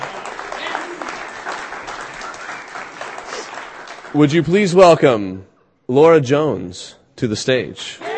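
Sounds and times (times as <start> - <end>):
audience applause for a performer at a reading: 0.0 - 4.5
speech: 4.1 - 8.1.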